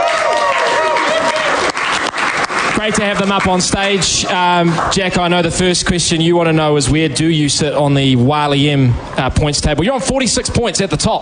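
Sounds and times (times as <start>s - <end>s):
applause for players in a sports bar: 0.0s - 5.2s
crowd whooping in a sports bar: 0.0s - 5.2s
speech: 2.8s - 11.2s.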